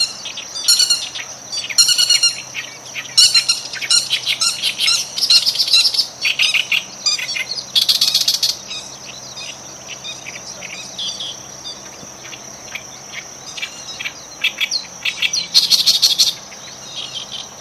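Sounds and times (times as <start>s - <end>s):
birds: 0.0s - 17.5s.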